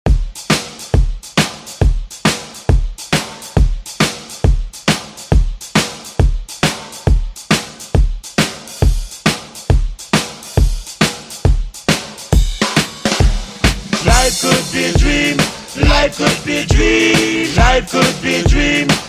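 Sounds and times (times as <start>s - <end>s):
funk drum beat: 0.0s - 19.0s.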